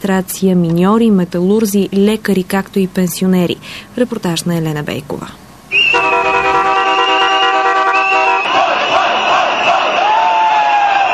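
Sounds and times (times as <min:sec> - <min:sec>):
speech: 0:00.0 - 0:05.5
noisy protest march: 0:05.7 - 0:11.1.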